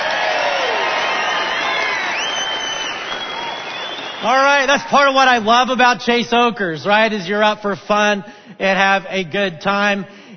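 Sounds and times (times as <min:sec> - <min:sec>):
audience applause and cheering with high whoops: 0:00.0 - 0:05.2
speech: 0:04.2 - 0:10.2.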